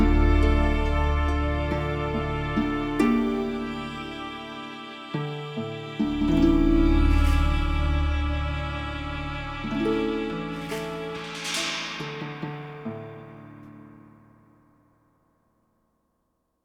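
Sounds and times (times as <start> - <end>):
dramatic mood music: 0.0 - 12.4.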